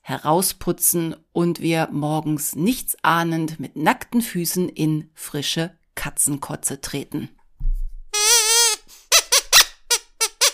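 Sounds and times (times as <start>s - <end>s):
speech: 0.1s - 7.4s
squeaky disgust sound effect: 8.2s - 10.5s.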